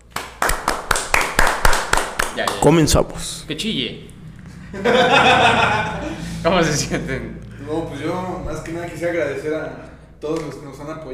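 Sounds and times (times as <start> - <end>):
hand clapping: 0.0 - 2.9
speech: 2.4 - 11.1
laughter: 4.5 - 7.9.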